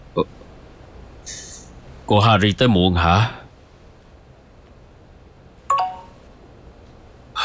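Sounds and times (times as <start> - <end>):
speech: 0.2 - 0.4, 2.1 - 3.4
text message notification chimes on a phone: 5.7 - 6.2.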